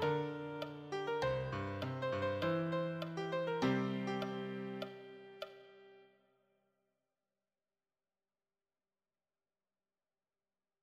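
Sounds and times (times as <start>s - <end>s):
advanced solo piano: 0.0s - 6.0s.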